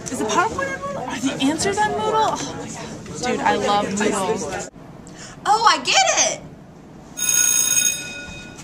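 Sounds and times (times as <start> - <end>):
speech: 0.3 - 4.8, 5.5 - 6.5
fire drill alarm bell ringing: 7.2 - 8.6.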